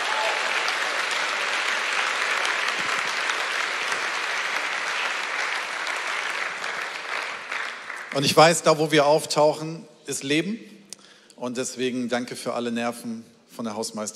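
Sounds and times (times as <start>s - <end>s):
audience applause in church: 0.0s - 8.4s
speech: 8.2s - 10.7s, 11.4s - 14.1s.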